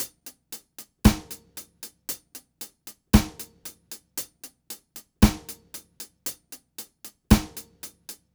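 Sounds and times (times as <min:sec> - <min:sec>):
one drop drumset beat: 0:01.1 - 0:01.4, 0:03.2 - 0:03.5, 0:05.2 - 0:05.6, 0:07.3 - 0:07.7.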